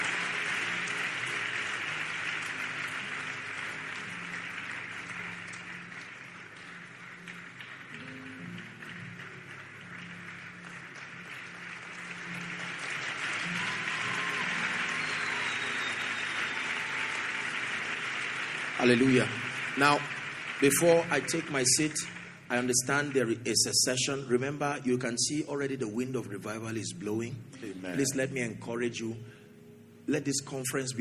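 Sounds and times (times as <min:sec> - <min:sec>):
church audience applauding: 0:00.0 - 0:24.7
speech: 0:18.8 - 0:29.4, 0:30.1 - 0:30.9.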